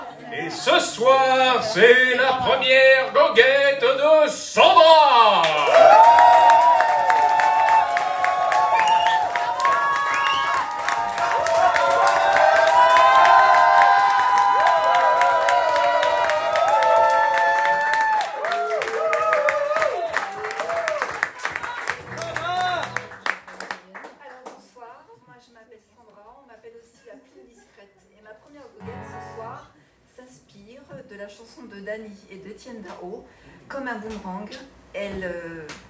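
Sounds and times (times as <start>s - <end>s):
speech: 0.6s - 5.3s
audience applause: 5.4s - 24.1s
crowd cheering and whooping: 5.5s - 23.1s.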